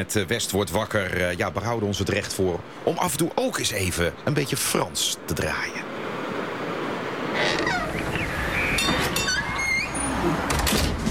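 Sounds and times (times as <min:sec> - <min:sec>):
speech: 0:00.0 - 0:06.0
door creaking: 0:07.3 - 0:11.0.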